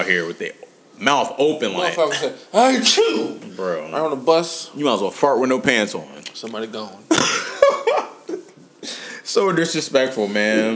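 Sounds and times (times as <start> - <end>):
speech: 0.0 - 8.1, 8.8 - 10.7
harsh raspy coughs: 7.1 - 7.6
laughter: 7.1 - 8.6.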